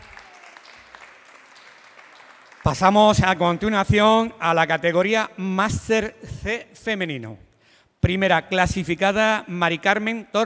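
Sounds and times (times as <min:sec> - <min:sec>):
audience applause: 0:00.0 - 0:03.0
speech: 0:02.6 - 0:10.4.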